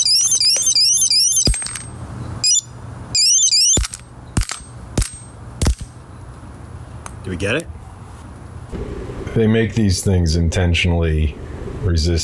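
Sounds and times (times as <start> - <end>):
anti-theft device alarm beeping: 0.0 - 1.6, 2.4 - 3.8
speech: 7.3 - 7.8, 9.4 - 12.2.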